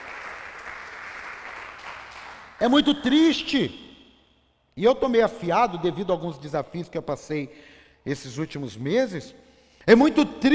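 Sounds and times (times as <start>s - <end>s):
church congregation clapping: 0.0s - 3.1s
speech: 2.6s - 3.8s, 4.8s - 10.5s.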